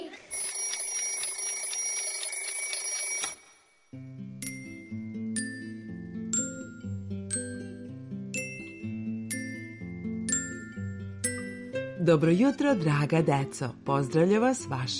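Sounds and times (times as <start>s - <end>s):
alarm clock ringing to open a children's morning radio show: 0.3s - 4.7s
bright tinkling tune of chime-like notes: 0.3s - 11.7s
speech: 12.1s - 14.9s.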